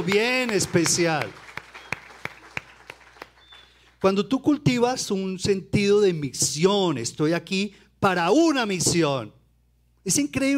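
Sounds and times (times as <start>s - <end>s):
speech: 0.0s - 1.5s, 4.0s - 9.4s, 10.0s - 10.5s
scattered hand claps from an audience: 0.0s - 4.0s.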